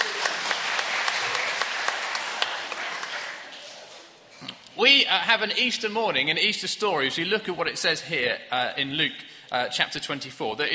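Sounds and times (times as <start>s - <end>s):
audience applause: 0.0s - 3.8s
speech: 4.8s - 10.7s.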